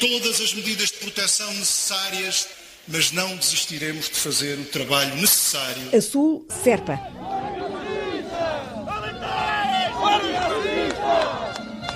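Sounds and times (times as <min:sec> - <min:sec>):
speech: 0:00.0 - 0:07.8
crowd of protesters shouting: 0:06.8 - 0:11.5.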